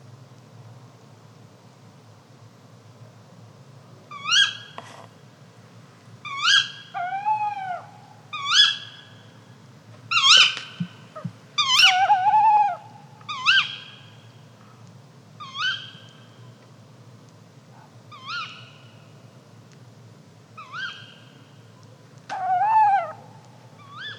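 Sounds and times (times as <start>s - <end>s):
low steady hum: 0.0s - 24.1s
bird calls: 6.3s - 9.3s, 10.1s - 14.4s, 15.4s - 16.6s, 18.1s - 19.1s, 20.6s - 24.1s.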